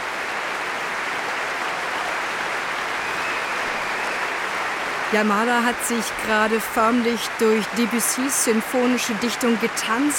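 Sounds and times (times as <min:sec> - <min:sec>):
concert audience applauding: 0:00.0 - 0:10.1
concert audience cheering: 0:00.0 - 0:10.1
concert audience whistling: 0:02.9 - 0:04.8
speech: 0:05.1 - 0:10.1.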